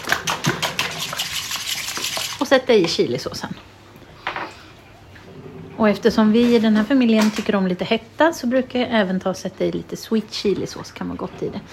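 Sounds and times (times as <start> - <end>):
whisk beating eggs in a bowl: 0.0 - 2.5
speech: 2.5 - 3.8, 5.8 - 11.7.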